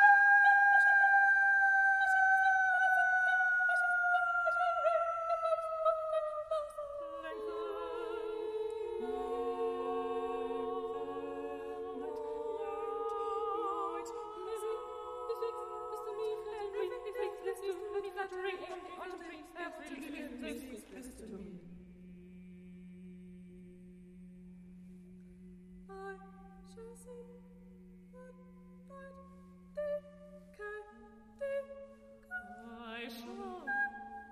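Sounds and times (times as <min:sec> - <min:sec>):
SSAA female choir singing: 0:00.0 - 0:21.8, 0:29.8 - 0:34.3.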